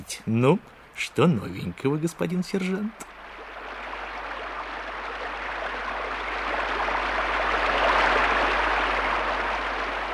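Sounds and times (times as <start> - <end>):
speech: 0.1 - 3.2
low hum: 2.9 - 10.1
heavy rain pouring: 3.2 - 10.1.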